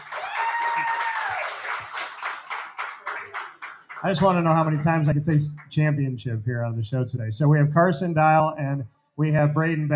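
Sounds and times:
round of applause: 0.0 - 5.8
speech: 4.0 - 9.9.

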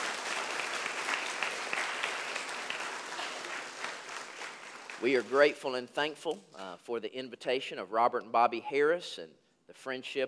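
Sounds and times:
audience applause: 0.0 - 5.5
speech: 5.0 - 10.2.

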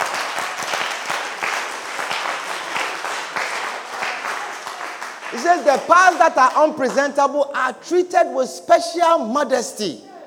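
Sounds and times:
audience applause: 0.0 - 7.1
speech: 5.3 - 10.1.

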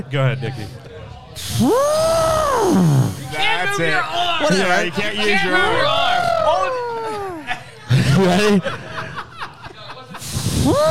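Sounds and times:
speech: 0.0 - 0.8, 1.4 - 6.8, 8.1 - 8.8, 10.6 - 10.9
person imitating an elephant trumpeting: 1.4 - 3.3, 10.4 - 10.9
laughter: 4.7 - 10.9.

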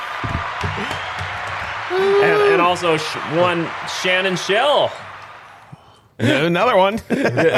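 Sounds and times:
crowd clapping sound effect: 0.0 - 5.8
speech: 1.9 - 5.1, 6.2 - 7.5.

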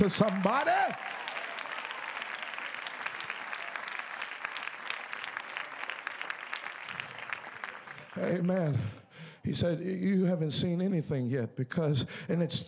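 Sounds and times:
speech: 0.0 - 1.2, 8.2 - 12.6
people clapping hands: 0.0 - 8.7.

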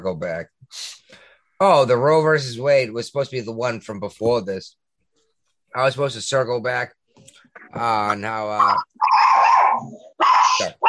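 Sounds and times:
speech: 0.0 - 4.8, 5.7 - 10.8
Chihuahua growling, whining and yipping: 8.7 - 10.8.

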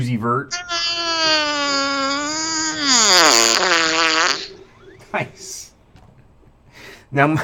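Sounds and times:
speech: 0.0 - 0.6, 7.1 - 7.4
long loud fart into the microphone: 0.5 - 5.2.

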